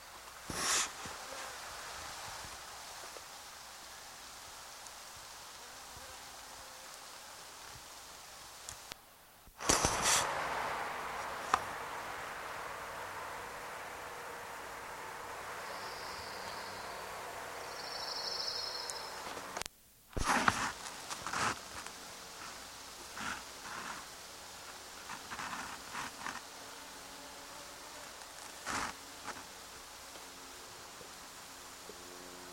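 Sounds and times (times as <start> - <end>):
steady hiss of wind-like noise: 0.0 - 32.5
orange-crowned warbler song trills: 15.5 - 19.2.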